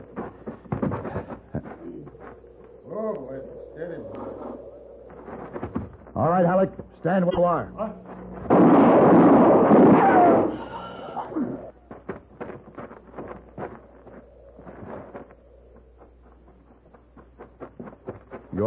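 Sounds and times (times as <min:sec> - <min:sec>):
speech: 0:06.2 - 0:08.0
gunshot in a tense western scene: 0:08.5 - 0:10.7.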